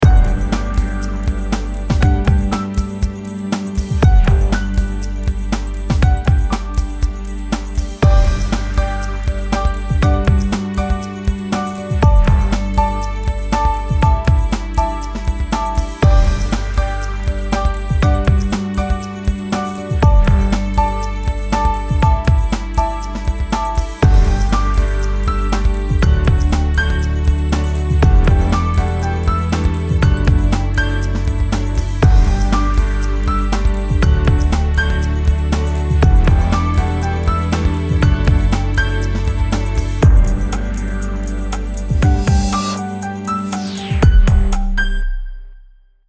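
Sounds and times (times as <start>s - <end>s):
music on hold: 0.0s - 45.1s.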